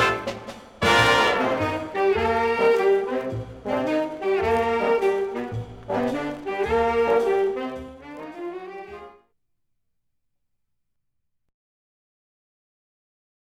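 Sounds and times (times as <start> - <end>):
filtered jazz: 0.0 - 9.2.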